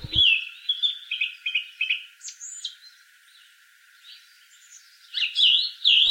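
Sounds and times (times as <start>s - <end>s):
song thrush singing: 0.0s - 6.1s.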